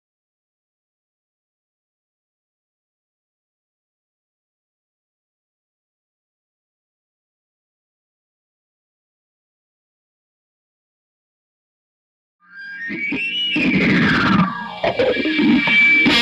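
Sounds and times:
bass guitar: 0:12.9 - 0:16.2.

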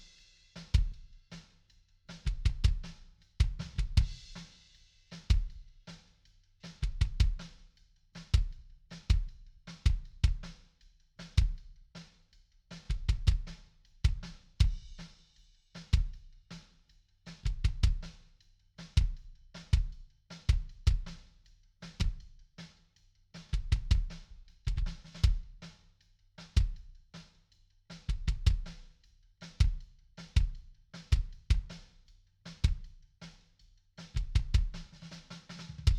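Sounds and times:
kick drum: 0:02.2 - 0:04.2, 0:05.3 - 0:05.7, 0:06.8 - 0:07.5, 0:08.3 - 0:10.5, 0:12.8 - 0:15.1, 0:17.4 - 0:18.1, 0:19.0 - 0:21.2, 0:22.0 - 0:22.3, 0:23.5 - 0:25.6, 0:26.6 - 0:26.9, 0:28.0 - 0:28.8, 0:29.6 - 0:31.8, 0:32.6 - 0:32.9, 0:34.1 - 0:34.9, 0:35.8 - 0:35.9.

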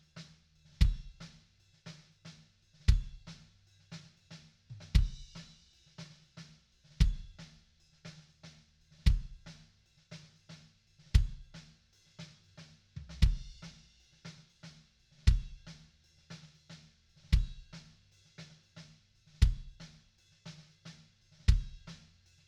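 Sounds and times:
kick drum: 0:00.8 - 0:01.3, 0:02.9 - 0:03.4, 0:04.8 - 0:05.5, 0:07.0 - 0:07.5, 0:09.0 - 0:09.4, 0:11.1 - 0:11.5, 0:13.0 - 0:13.7, 0:15.3 - 0:15.7, 0:17.3 - 0:17.9, 0:19.4 - 0:20.0, 0:21.5 - 0:22.0.

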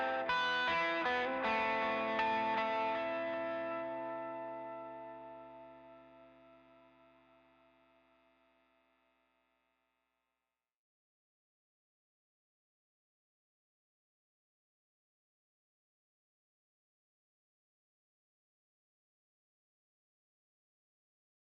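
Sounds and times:
guitar stems: 0:00.0 - 0:08.0.

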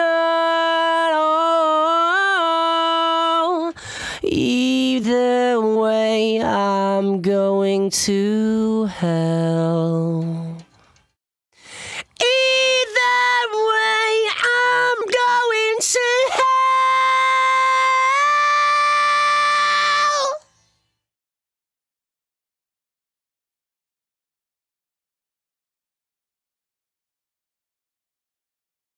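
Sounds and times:
lead vocals: 0:00.0 - 0:11.0, 0:11.6 - 0:20.7.

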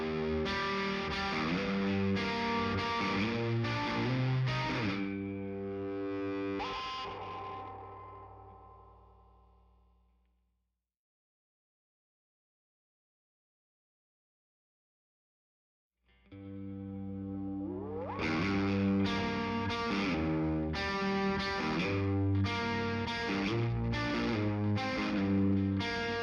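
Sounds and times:
guitars: 0:00.0 - 0:09.6, 0:16.1 - 0:26.2.

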